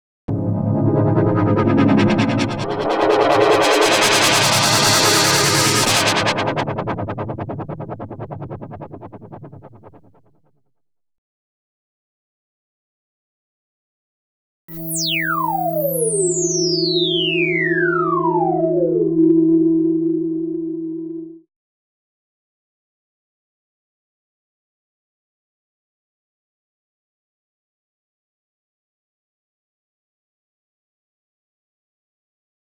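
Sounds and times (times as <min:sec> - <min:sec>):
PPG effects: 0:00.3 - 0:10.0, 0:14.7 - 0:21.4.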